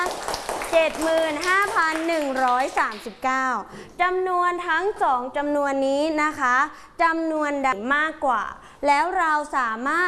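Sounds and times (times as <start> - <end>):
students clapping: 0.0 - 3.1
speech: 0.7 - 10.0.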